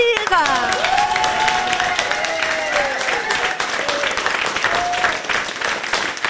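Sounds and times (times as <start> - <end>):
studio audience applause: 0.0 - 6.2.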